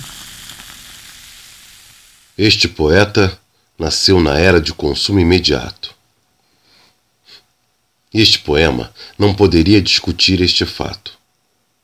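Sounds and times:
soda poured into plastic cup, fizzing: 0:00.0 - 0:02.4
speech: 0:02.4 - 0:06.0, 0:08.1 - 0:11.2.

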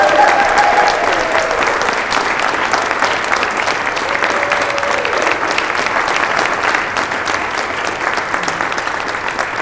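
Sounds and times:
audience cheering: 0:00.0 - 0:02.3, 0:03.9 - 0:05.7
audience clapping: 0:00.0 - 0:09.6.

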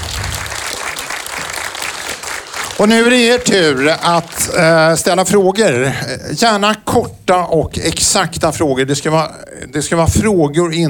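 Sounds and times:
audience applause: 0:00.0 - 0:05.0
speech: 0:02.8 - 0:10.8.

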